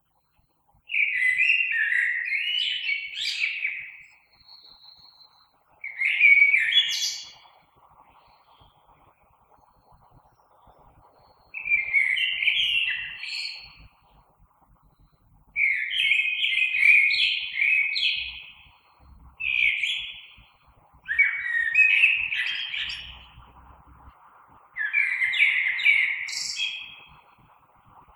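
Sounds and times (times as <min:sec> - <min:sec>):
Common blackbird fluting warble song: 0:00.9 - 0:08.9, 0:10.5 - 0:14.1, 0:15.6 - 0:24.0, 0:24.8 - 0:27.3
faint low rumble: 0:07.6 - 0:11.6, 0:13.6 - 0:15.6, 0:18.2 - 0:25.1.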